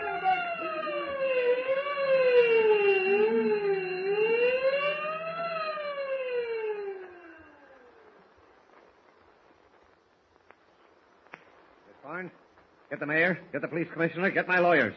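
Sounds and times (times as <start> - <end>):
prison escape alarm siren rising and falling: 0.0 - 8.2
speech: 13.0 - 14.9.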